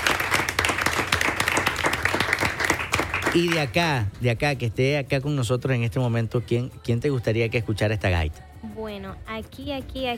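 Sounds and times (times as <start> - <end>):
audience applause: 0.0 - 4.0
speech: 3.3 - 10.1.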